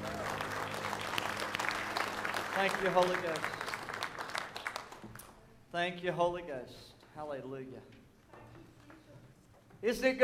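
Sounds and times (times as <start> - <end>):
audience clapping: 0.0 - 5.4
speech: 2.6 - 3.6, 5.7 - 8.0, 9.8 - 10.2.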